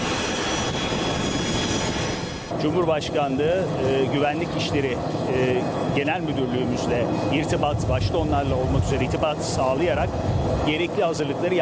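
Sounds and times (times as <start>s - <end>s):
airplane engines roaring as a plane departs Istanbul Atatürk Airport: 0.0s - 11.6s
speech: 2.6s - 11.6s.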